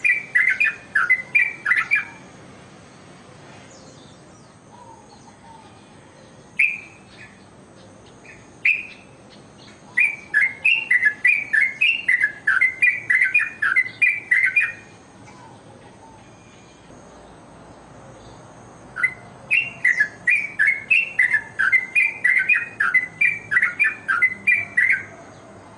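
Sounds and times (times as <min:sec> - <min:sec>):
bird ringing chirps: 0:00.0 - 0:02.2, 0:08.1 - 0:16.9, 0:19.0 - 0:25.1.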